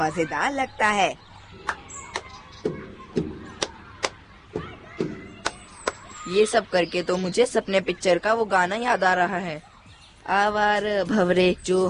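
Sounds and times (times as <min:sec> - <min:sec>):
speech: 0:00.0 - 0:01.8, 0:06.3 - 0:09.7, 0:10.3 - 0:11.8
rhythmic hand claps: 0:01.6 - 0:06.2.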